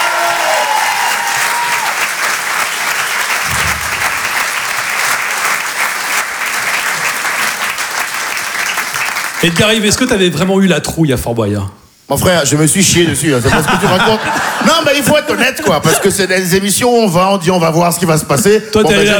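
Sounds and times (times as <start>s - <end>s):
theatre audience applauding loudly: 0.0s - 10.3s
speech: 9.4s - 19.1s
laughter: 13.3s - 16.3s.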